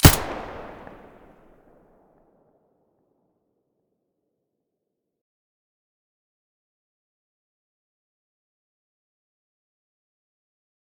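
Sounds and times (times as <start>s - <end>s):
gun muzzle blast: 0.0s - 1.3s.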